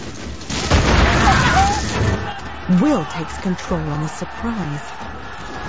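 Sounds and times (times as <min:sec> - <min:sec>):
grenade explosion in the hold of a warship: 0:00.5 - 0:02.3
speech: 0:02.7 - 0:05.1.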